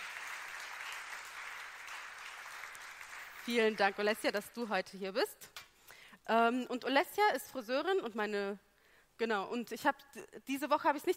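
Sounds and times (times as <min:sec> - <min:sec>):
audience applause: 0:00.0 - 0:03.8
speech: 0:03.4 - 0:05.6, 0:06.3 - 0:08.6, 0:09.2 - 0:11.1.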